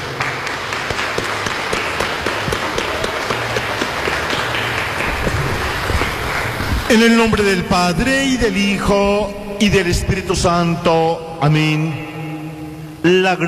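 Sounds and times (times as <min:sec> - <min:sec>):
applause for baptized child's family: 0:00.0 - 0:07.1
speech: 0:06.9 - 0:12.1, 0:13.0 - 0:13.4.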